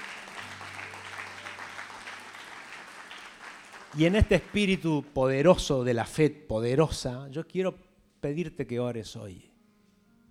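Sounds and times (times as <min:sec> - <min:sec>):
crowd applauding: 0:00.0 - 0:05.1
speech: 0:04.0 - 0:09.5.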